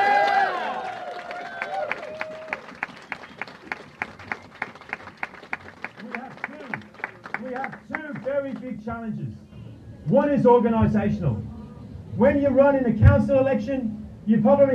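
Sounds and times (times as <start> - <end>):
audience applause: 0.0 - 8.7
speech: 8.4 - 9.5, 10.1 - 11.5, 12.2 - 14.7.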